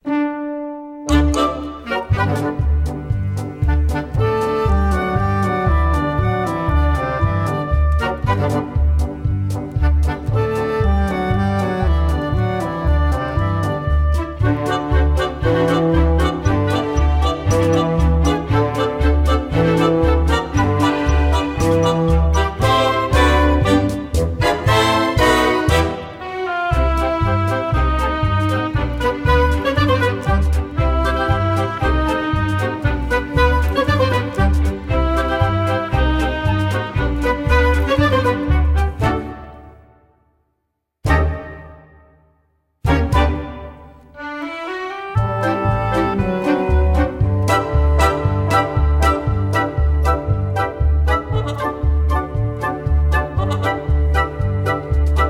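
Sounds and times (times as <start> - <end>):
backing track: 0.0 - 39.8, 42.8 - 55.2.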